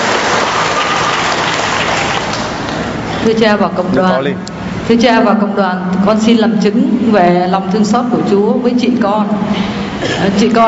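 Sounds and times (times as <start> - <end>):
audience applause: 0.0 - 2.8
speech: 3.2 - 10.6.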